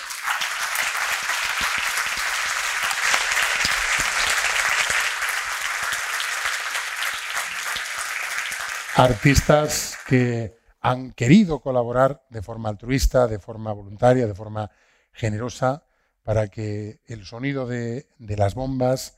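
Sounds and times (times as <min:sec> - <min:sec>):
audience applause: 0:00.0 - 0:10.4
speech: 0:09.0 - 0:19.1.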